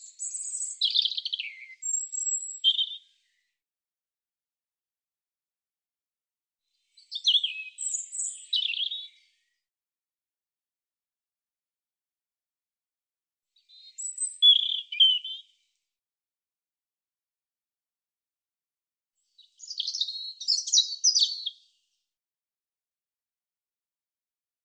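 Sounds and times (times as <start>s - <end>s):
European robin song of high thin warbles and trills: 0.0s - 3.0s, 7.0s - 9.1s, 13.6s - 15.4s, 19.4s - 21.5s.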